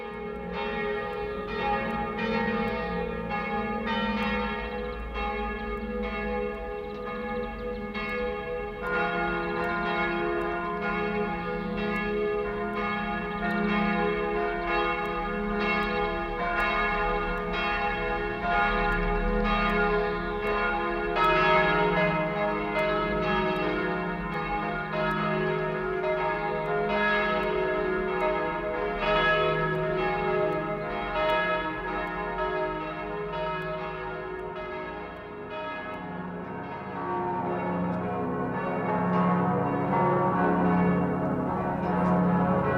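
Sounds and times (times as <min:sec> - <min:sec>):
Salzburg Cathedral church bells ringing: 0:00.0 - 0:42.7.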